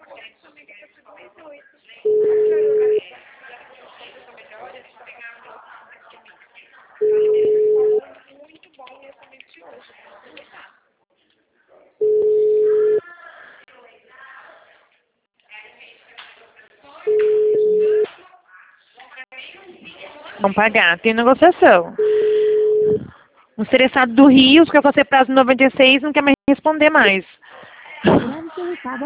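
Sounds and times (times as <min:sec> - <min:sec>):
telephone ringing tone on an outgoing call: 0:02.0 - 0:03.0, 0:07.0 - 0:08.0, 0:12.0 - 0:13.0, 0:17.1 - 0:18.0, 0:22.0 - 0:23.1
speech: 0:20.4 - 0:22.1, 0:23.6 - 0:27.3, 0:28.8 - 0:29.0.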